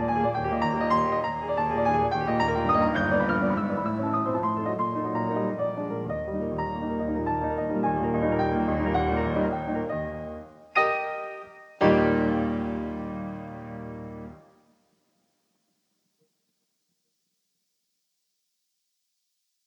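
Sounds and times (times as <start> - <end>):
classical prelude in E flat major: 0.0 - 14.5.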